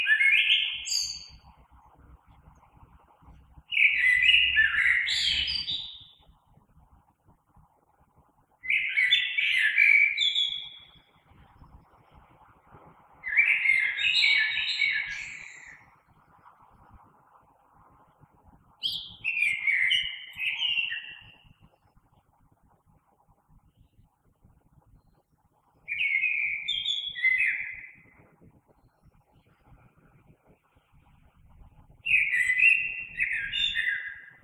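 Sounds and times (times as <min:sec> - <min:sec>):
common blackbird singing warbling phrases: 0:00.0 - 0:01.5, 0:03.7 - 0:06.2, 0:08.6 - 0:11.0, 0:13.2 - 0:15.9, 0:18.8 - 0:21.4, 0:25.9 - 0:28.1, 0:32.0 - 0:34.4
faint low rumble: 0:01.2 - 0:04.6, 0:06.0 - 0:08.6, 0:10.8 - 0:13.2, 0:15.4 - 0:19.2, 0:21.2 - 0:25.9, 0:28.0 - 0:32.3.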